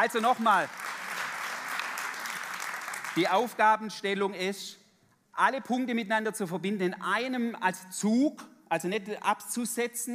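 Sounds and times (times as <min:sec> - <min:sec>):
speech: 0:00.0 - 0:00.9, 0:03.2 - 0:04.8, 0:05.4 - 0:10.1
audience applause: 0:00.0 - 0:03.3.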